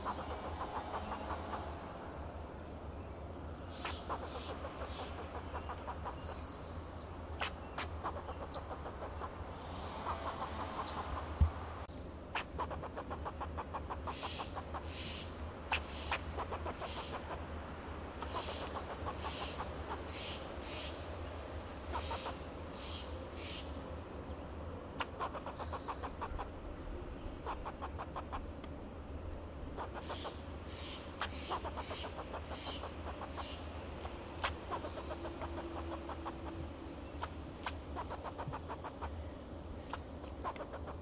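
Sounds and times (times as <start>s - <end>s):
fox squirrel chucking: 0.0s - 1.7s, 3.8s - 6.3s, 7.4s - 9.4s, 10.0s - 11.4s, 12.3s - 15.0s, 15.7s - 17.4s, 18.2s - 20.0s, 21.9s - 22.4s, 25.0s - 26.5s, 27.4s - 28.5s, 29.8s - 30.4s, 31.2s - 36.6s, 37.2s - 39.1s, 40.3s - 41.0s
faint bird chirps: 0.0s - 41.0s.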